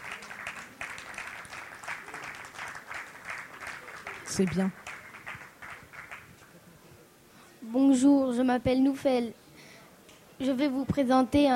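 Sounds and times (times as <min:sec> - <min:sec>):
audience applause: 0:00.0 - 0:06.6
speech: 0:04.3 - 0:04.9, 0:07.8 - 0:09.4, 0:10.4 - 0:11.5.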